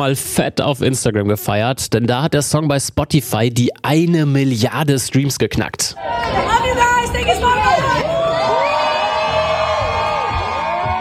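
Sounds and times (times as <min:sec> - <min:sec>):
speech: 0:00.0 - 0:06.6
crowd cheering and whooping: 0:06.0 - 0:10.9.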